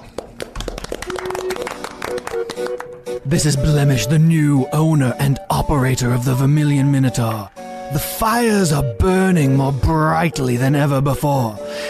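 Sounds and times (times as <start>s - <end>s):
hand clap: 0.0s - 3.2s
speech: 2.6s - 11.8s.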